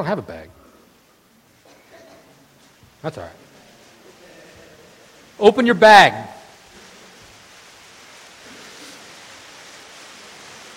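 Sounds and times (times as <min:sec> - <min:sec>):
speech: 0:00.0 - 0:00.6, 0:03.0 - 0:03.5, 0:05.4 - 0:06.4
heavy rain downpour: 0:03.5 - 0:10.7.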